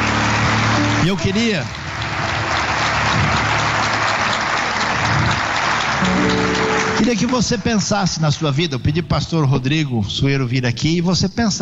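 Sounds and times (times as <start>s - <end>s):
audience applauding: 0.0s - 8.7s
speech: 1.1s - 1.9s, 7.0s - 11.5s.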